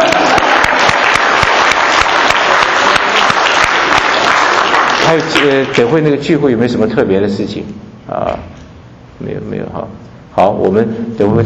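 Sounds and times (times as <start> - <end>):
audience applause at a gathering: 0.0 - 5.9
speech: 5.1 - 8.5, 9.2 - 11.4.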